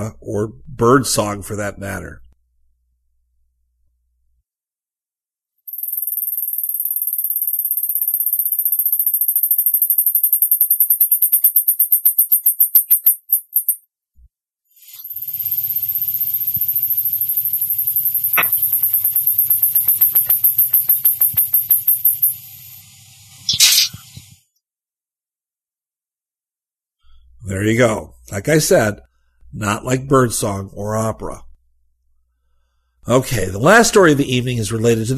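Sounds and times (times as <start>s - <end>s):
speech: 0.0s - 2.2s, 27.5s - 31.5s, 33.0s - 35.1s
two mice singing a high-pitched whistle duet: 23.5s - 24.1s.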